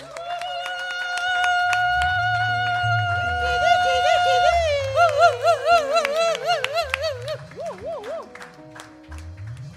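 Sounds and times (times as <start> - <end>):
audience cheering and applauding: 0.0 - 9.7.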